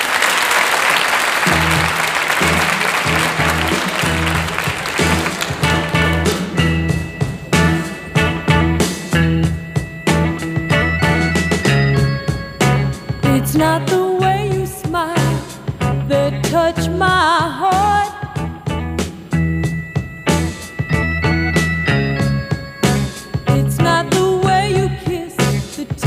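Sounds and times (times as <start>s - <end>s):
audience applause welcoming a rock group: 0.0s - 9.1s
rock band music: 1.2s - 26.0s.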